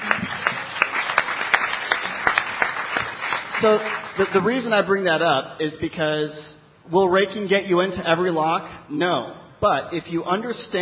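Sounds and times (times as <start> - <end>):
audience applause: 0.0 - 4.4
speech: 3.6 - 10.8.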